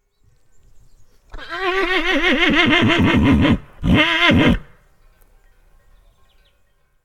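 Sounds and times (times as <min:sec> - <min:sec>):
Merens horse neighing: 0:01.3 - 0:04.7.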